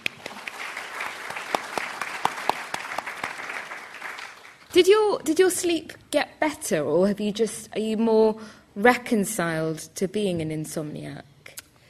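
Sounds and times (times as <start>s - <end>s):
audience applause: 0.0s - 4.7s
speech: 4.7s - 11.3s.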